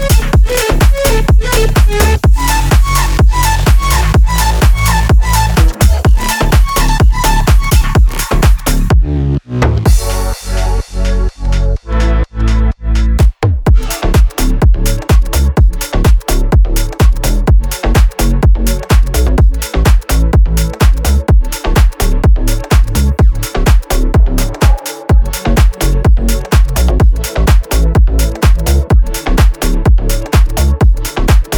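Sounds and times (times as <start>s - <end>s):
instrumental music at 126 BPM in F sharp minor: 0.0s - 31.5s.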